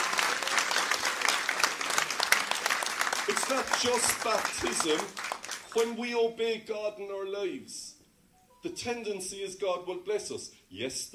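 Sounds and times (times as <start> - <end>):
audience applause: 0.0 - 5.9
speech: 3.5 - 5.2, 5.8 - 7.9, 8.6 - 11.1.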